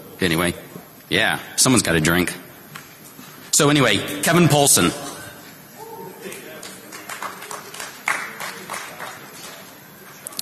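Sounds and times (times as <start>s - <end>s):
speech: 0.2s - 2.5s, 3.6s - 5.1s
quiet clapping: 6.2s - 10.4s.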